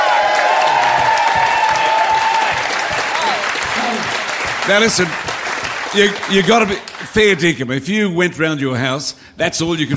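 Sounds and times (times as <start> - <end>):
crowd cheering and whoops: 0.0 - 4.6
crowd applause: 0.0 - 7.4
speech: 4.7 - 5.3, 5.9 - 9.9.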